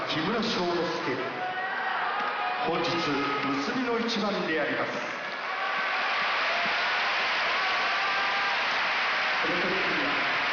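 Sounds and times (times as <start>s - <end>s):
speech: 0.1s - 1.4s, 2.6s - 5.2s
applause spreading through the Kokugikan sumo arena: 2.6s - 10.5s.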